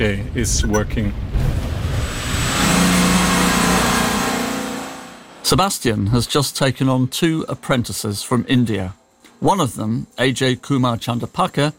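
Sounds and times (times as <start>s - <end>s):
speech: 0.0s - 1.6s, 5.4s - 11.7s
car engine droning while driving through the village of Buchenbach: 1.8s - 5.4s.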